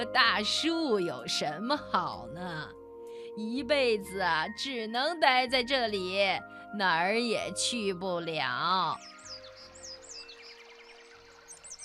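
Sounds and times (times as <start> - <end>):
speech: 0.0 - 2.8, 3.4 - 9.2
birds singing in a tree: 8.8 - 11.8.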